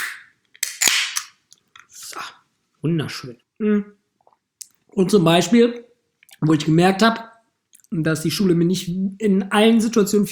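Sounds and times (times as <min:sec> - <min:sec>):
drink being opened with hiss, pop and rush of gas: 0:00.0 - 0:01.4
speech: 0:02.8 - 0:04.0, 0:05.0 - 0:07.3, 0:07.9 - 0:10.2.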